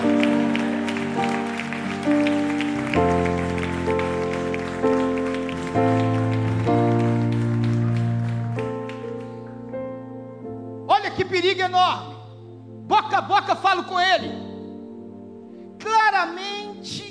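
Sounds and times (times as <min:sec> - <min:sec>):
audience applause: 0:00.0 - 0:09.7
speech: 0:11.5 - 0:12.1, 0:13.0 - 0:14.5.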